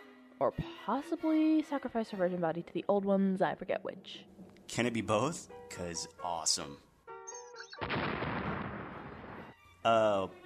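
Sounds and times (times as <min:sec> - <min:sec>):
speech: 0:00.4 - 0:06.9, 0:09.8 - 0:10.4
cartoon explosion effect as a hamster blows up: 0:07.8 - 0:09.5.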